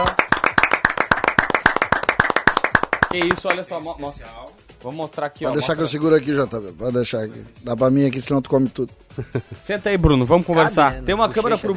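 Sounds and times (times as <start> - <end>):
applause: 0.0 - 3.8
speech: 3.1 - 11.7.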